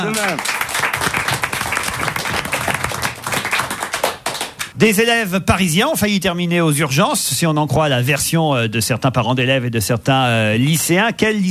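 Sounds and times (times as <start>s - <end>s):
speech: 0.0s - 0.9s, 4.8s - 11.4s
studio audience applause: 0.0s - 4.8s.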